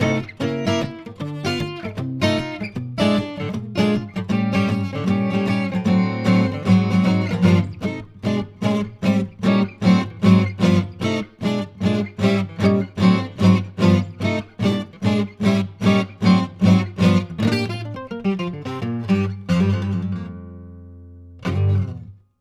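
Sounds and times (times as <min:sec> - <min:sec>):
jazz blues standard in G on guitar: 0:00.0 - 0:22.2.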